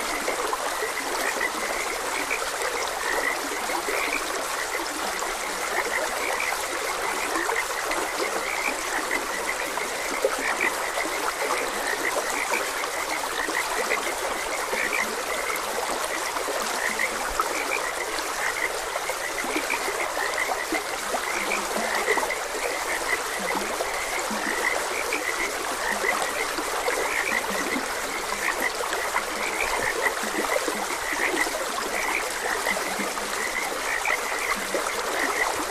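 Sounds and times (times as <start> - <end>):
frogs croaking: 0.0 - 35.7
stream water rushing: 0.0 - 35.7.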